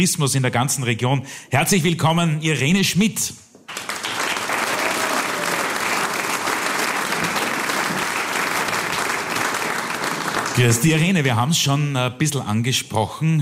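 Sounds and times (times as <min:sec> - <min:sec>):
speech: 0:00.0 - 0:03.9, 0:10.6 - 0:13.4
audience applause: 0:03.7 - 0:11.2.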